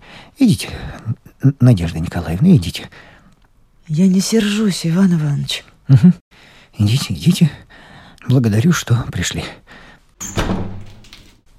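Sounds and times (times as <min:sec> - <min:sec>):
speech: 0:00.4 - 0:03.1, 0:03.9 - 0:10.8
door shutting: 0:10.2 - 0:11.4.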